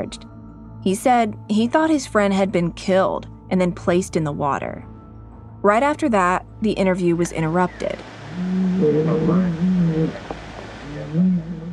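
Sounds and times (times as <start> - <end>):
speech: 0.0 - 4.9, 5.6 - 10.3
large cow moaning loudly: 8.2 - 10.2.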